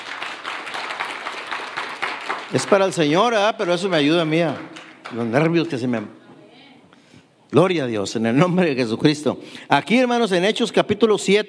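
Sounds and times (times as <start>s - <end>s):
audience applause: 0.0s - 5.6s
speech: 2.5s - 6.2s, 7.5s - 11.4s.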